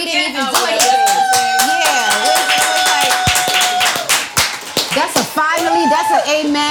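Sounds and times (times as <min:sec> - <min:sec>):
hand clap sound effect: 0:00.4 - 0:05.8.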